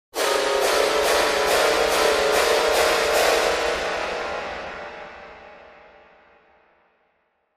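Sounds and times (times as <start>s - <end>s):
keyboard piano and strings: 0.2s - 5.9s.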